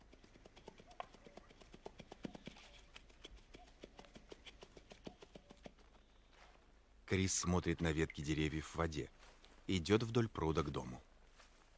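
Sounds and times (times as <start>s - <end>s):
hoofbeats of a bay horse with bridle and no saddle running around a forest clearing: 0.0s - 6.0s
speech: 7.1s - 11.1s.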